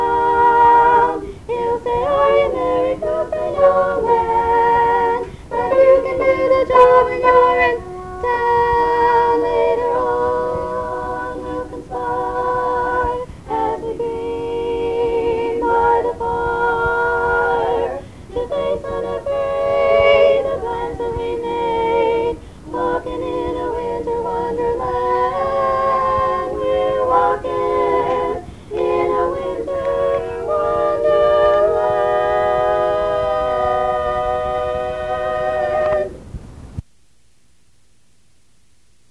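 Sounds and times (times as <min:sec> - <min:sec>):
tenor singing: 0:00.0 - 0:36.3.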